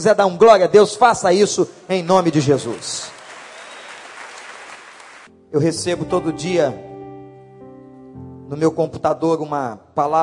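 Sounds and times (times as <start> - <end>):
speech: 0.0 - 3.2, 5.5 - 6.9, 8.5 - 10.2
audience applause: 2.6 - 5.3.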